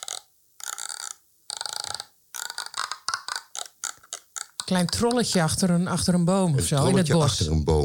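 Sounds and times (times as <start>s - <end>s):
bosduivel instrument played in raspy croaking bursts: 0.0s - 6.2s
speech: 4.7s - 7.8s.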